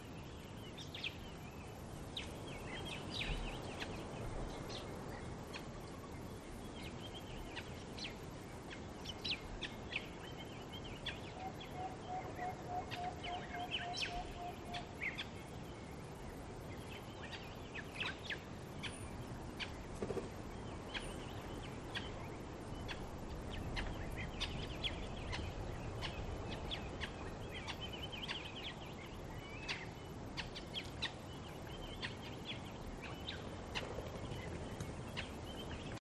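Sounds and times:
birds at a bush water hole at dusk: 0:00.0 - 0:35.9
insects at a bush water hole at dusk: 0:00.0 - 0:35.9
wind at a bush water hole: 0:00.0 - 0:35.9.

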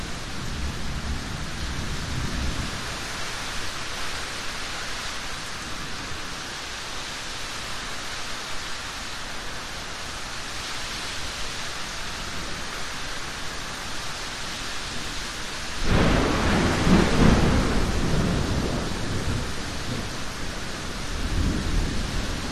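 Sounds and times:
driving rain in a thunderstorm: 0:00.0 - 0:22.5
wind in a thunderstorm: 0:00.0 - 0:22.5
light thunder cracks: 0:15.8 - 0:20.0
thunder rumbles: 0:15.8 - 0:22.5.

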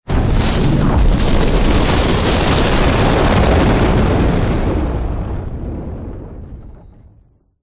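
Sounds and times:
backdraft explosion fire burst: 0:00.0 - 0:07.5.

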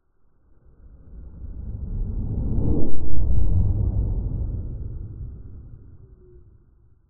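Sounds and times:
science fiction spacecraft flying past heard from inside: 0:01.5 - 0:06.5.

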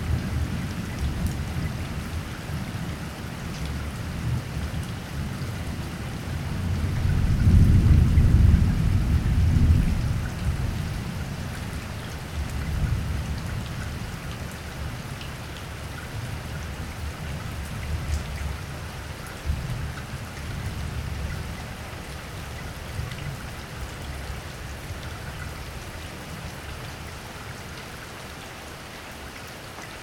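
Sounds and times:
light rain: 0:00.0 - 0:30.0
thunder: 0:07.1 - 0:10.2.

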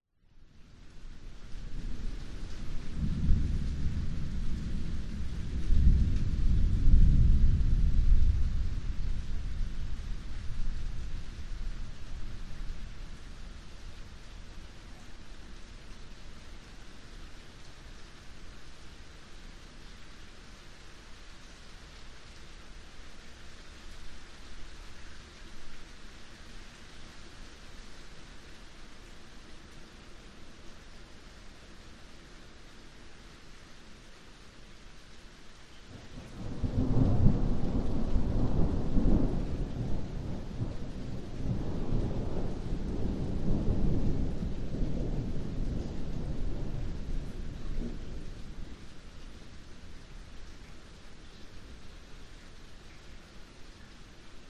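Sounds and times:
very light rain drips in a yard: 0:00.1 - 0:54.4
distant thunderstorm rumbles over a yard: 0:01.9 - 0:12.8, 0:36.0 - 0:49.1.

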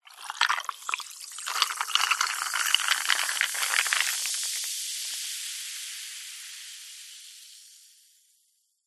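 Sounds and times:
ice in a glass clinking: 0:00.0 - 0:04.7
cola pouring into a glass: 0:00.0 - 0:05.2
cola fizzing: 0:00.0 - 0:07.1.

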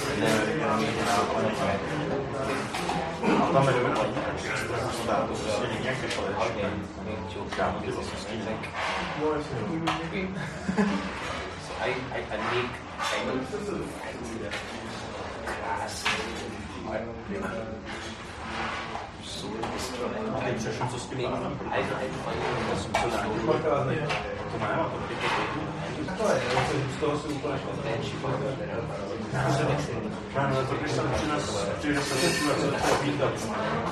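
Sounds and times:
medium crowd murmur in an Indian restaurant interior in Prague: 0:00.0 - 0:07.3, 0:08.0 - 0:33.8
people eating food from metal plates: 0:00.0 - 0:33.8
heavy coughing: 0:03.2 - 0:03.6
laughter: 0:10.2 - 0:11.6.

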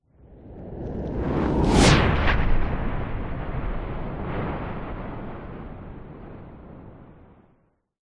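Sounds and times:
powerful cinematic whoosh: 0:01.0 - 0:05.2
thunder crack tail: 0:01.2 - 0:07.4.

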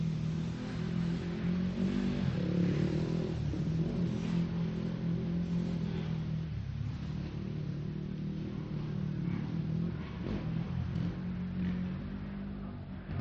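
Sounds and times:
motocross race motorcycles passing: 0:00.0 - 0:13.1.

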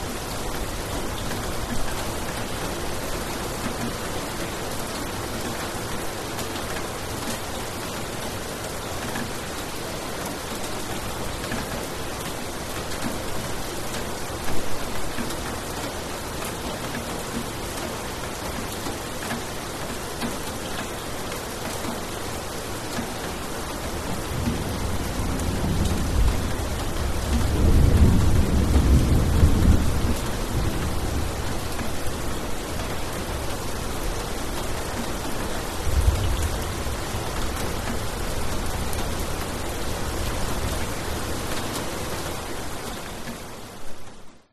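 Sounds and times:
heavy rain on concrete in Bali Indonesia: 0:00.0 - 0:44.4
distant thunder in Bali Indonesia: 0:24.2 - 0:32.4, 0:35.7 - 0:41.2.

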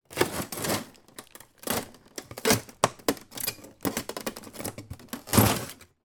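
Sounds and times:
household freezer compartment drawer pulled out stuck on ice: 0:00.0 - 0:06.0.

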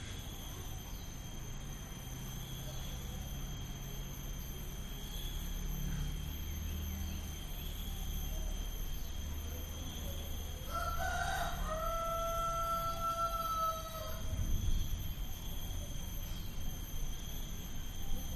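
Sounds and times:
insect hum: 0:00.0 - 0:18.3
rooster crowing: 0:10.5 - 0:14.6
low rumble: 0:14.2 - 0:17.2.

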